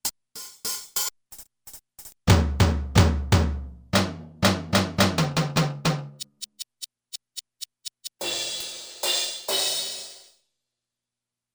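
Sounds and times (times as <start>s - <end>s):
powerful drums: 0.4s - 6.6s, 8.0s - 10.2s.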